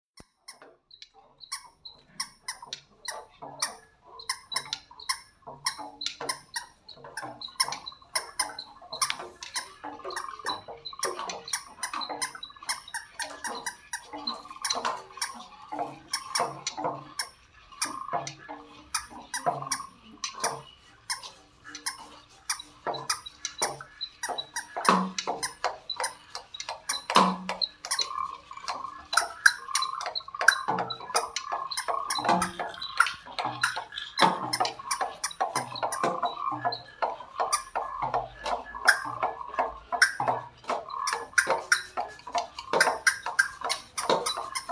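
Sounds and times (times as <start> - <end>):
garden ambience: 0.2 - 44.7.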